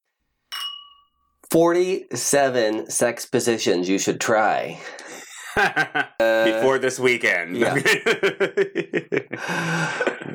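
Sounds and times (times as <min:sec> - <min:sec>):
glass clinking as a screw-cap wine bottle is opened: 0:00.5 - 0:01.4
speech: 0:01.5 - 0:10.3
laughter: 0:04.8 - 0:06.8, 0:07.6 - 0:10.3.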